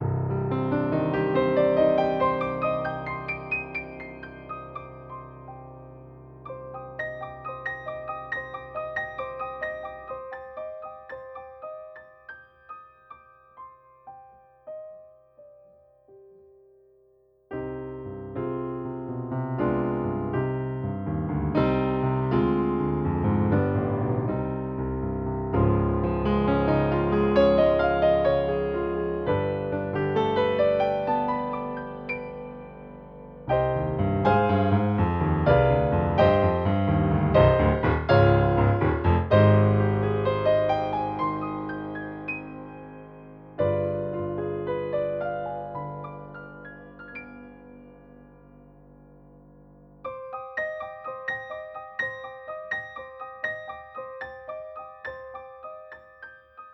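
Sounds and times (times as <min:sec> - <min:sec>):
Kawai Novus N5 piano sound: 0:00.0 - 0:56.7.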